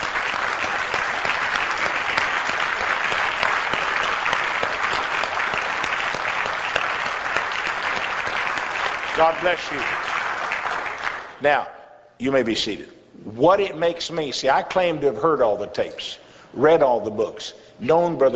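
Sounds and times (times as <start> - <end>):
audience applause: 0.0 - 11.4
speech: 9.2 - 10.1, 11.4 - 18.3.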